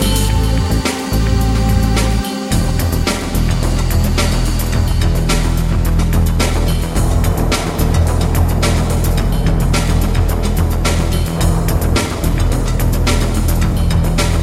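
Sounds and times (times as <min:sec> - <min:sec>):
instrumental crime background music: 0:00.0 - 0:14.4.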